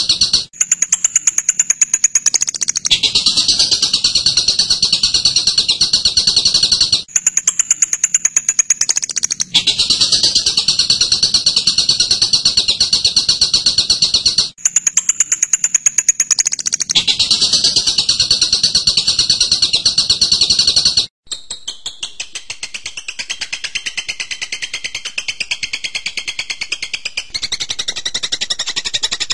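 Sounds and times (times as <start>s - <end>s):
songbird singing: 0.0s - 22.3s, 22.9s - 29.3s.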